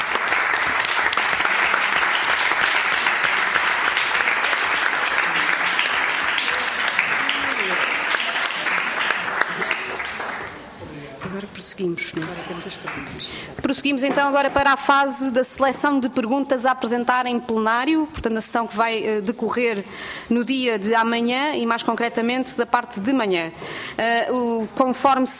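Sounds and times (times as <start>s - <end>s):
audience applause: 0.0s - 10.7s
speech: 11.8s - 25.3s.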